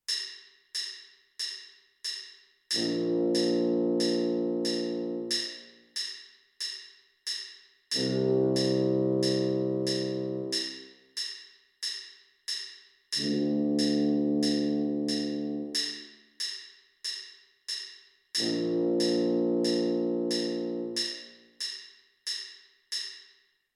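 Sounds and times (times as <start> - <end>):
tuba: 2.7 - 5.8, 7.9 - 10.9, 13.2 - 16.2, 18.4 - 21.6.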